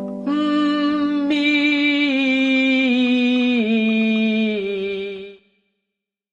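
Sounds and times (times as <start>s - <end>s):
person humming a descending legato line: 0.2s - 5.3s.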